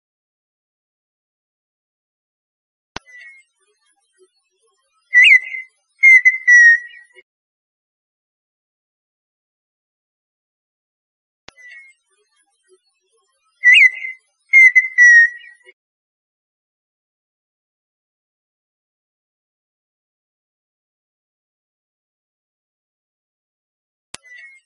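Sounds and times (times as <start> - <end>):
partridge song of clicks and whistles: 5.1 - 7.2, 13.6 - 15.7.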